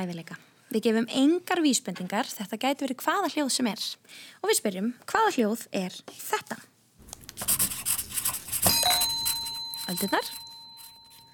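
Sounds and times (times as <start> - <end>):
speech: 0.0 - 6.7, 9.9 - 10.4
pencil scratching on paper: 7.0 - 11.3
bright metallic ding: 8.4 - 11.3.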